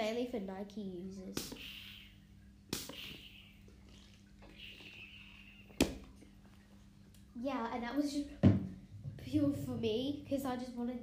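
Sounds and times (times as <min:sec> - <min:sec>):
faint steady hiss and low hum: 0:00.0 - 0:11.0
speech: 0:00.3 - 0:01.8, 0:07.4 - 0:08.5, 0:09.2 - 0:11.0
spray bottle spraying: 0:01.4 - 0:05.0.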